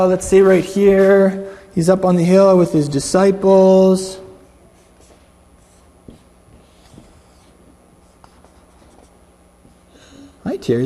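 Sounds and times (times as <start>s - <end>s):
speech: 0.0s - 4.2s, 10.4s - 10.8s
pen drawing a picture: 4.8s - 9.2s.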